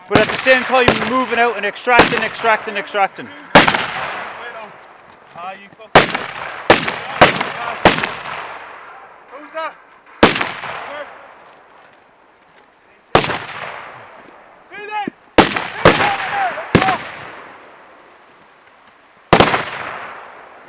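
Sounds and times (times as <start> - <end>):
gunfire from soldiers firing ammunition: 0.0 - 4.7, 5.9 - 9.5, 10.1 - 11.4, 13.1 - 14.2, 15.4 - 17.6, 19.3 - 20.6
speech: 0.1 - 3.4, 5.4 - 6.0.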